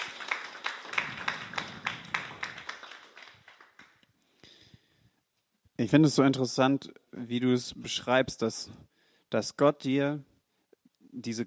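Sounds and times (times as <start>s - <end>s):
applause: 0.0s - 4.1s
speech: 5.8s - 10.3s, 11.2s - 11.4s.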